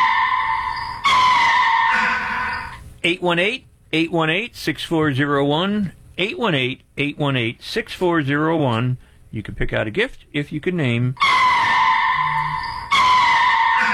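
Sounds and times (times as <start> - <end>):
sea lion calls: 0.0 - 2.8, 11.2 - 13.9
speech: 3.0 - 11.3.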